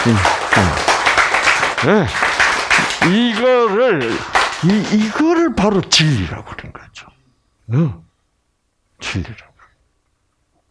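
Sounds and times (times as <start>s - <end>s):
speech: 0.0s - 0.7s, 1.8s - 2.2s, 3.0s - 7.1s, 7.7s - 8.0s, 9.0s - 9.5s
Korean congregation applause during a sermon: 0.0s - 5.8s.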